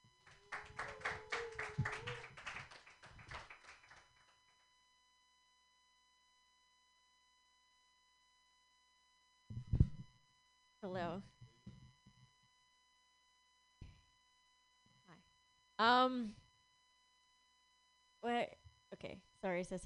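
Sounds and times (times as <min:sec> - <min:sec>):
audience clapping: 0:00.0 - 0:04.4
speech: 0:10.8 - 0:11.3, 0:15.8 - 0:16.4, 0:19.1 - 0:19.8.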